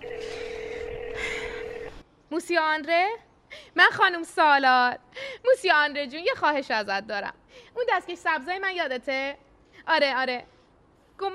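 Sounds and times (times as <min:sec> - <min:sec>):
telephone tone as a woman dials a call: 0:00.0 - 0:02.0
speech: 0:02.4 - 0:10.5, 0:11.2 - 0:11.3.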